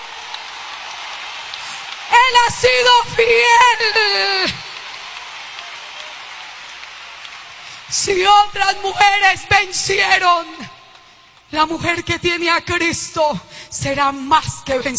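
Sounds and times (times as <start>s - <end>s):
audience applause: 0.0s - 9.0s
speech: 2.4s - 4.6s, 8.0s - 10.7s, 11.5s - 14.9s.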